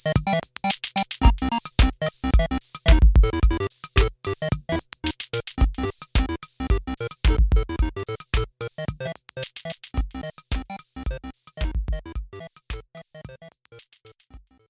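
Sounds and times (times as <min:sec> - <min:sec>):
beeping boogie music: 0:01.2 - 0:09.2, 0:10.0 - 0:13.6.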